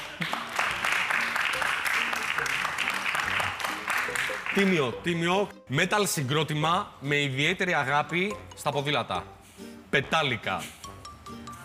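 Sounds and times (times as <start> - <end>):
crowd applauding: 0.0 - 5.1
speech: 4.6 - 10.8.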